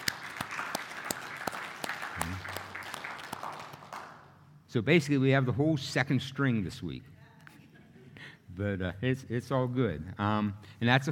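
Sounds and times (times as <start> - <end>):
audience applause: 0.0 - 4.2
speech: 4.7 - 7.1, 8.6 - 11.1.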